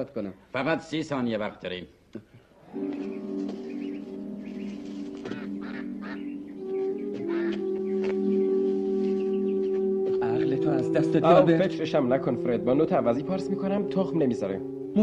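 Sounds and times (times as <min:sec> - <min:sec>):
speech: 0:00.0 - 0:03.1, 0:10.9 - 0:15.0
steady humming tonal background: 0:02.6 - 0:15.0
duck quacking: 0:03.0 - 0:08.2.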